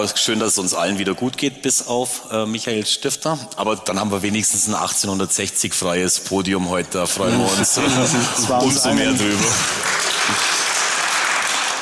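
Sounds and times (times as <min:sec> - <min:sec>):
speech: 0:00.0 - 0:10.5
laughter: 0:07.0 - 0:10.8
crowd clapping: 0:07.3 - 0:11.7.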